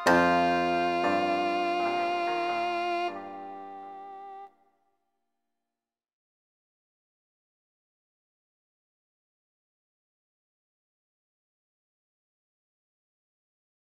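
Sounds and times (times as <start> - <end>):
Japanese thirteen limit ensemble playing fractal music: 0.0 - 4.4.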